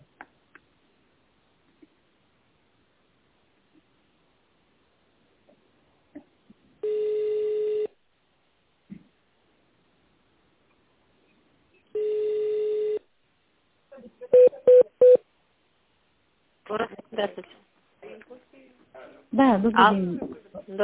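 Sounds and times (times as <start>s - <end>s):
long steady telephone tones: 6.8s - 8.0s, 12.0s - 13.0s
touch-tone dialing beeps: 14.4s - 15.2s
speech: 17.2s - 17.6s, 19.4s - 20.8s.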